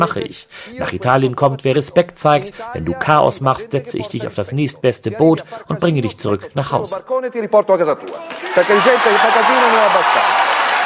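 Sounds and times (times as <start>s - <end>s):
speech: 0.0s - 10.4s
audience applause after political speech: 8.1s - 10.8s.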